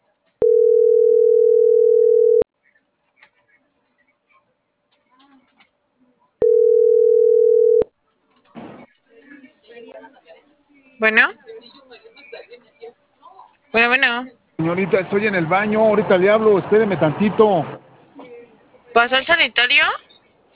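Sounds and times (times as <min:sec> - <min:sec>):
telephone ringback tone after dialing: 0:00.4 - 0:02.4, 0:06.4 - 0:07.8
speech: 0:11.0 - 0:11.4, 0:13.8 - 0:17.8, 0:18.9 - 0:20.0.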